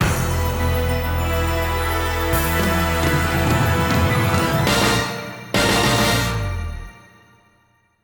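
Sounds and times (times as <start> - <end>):
stage clear jingle: 0.0 - 7.3.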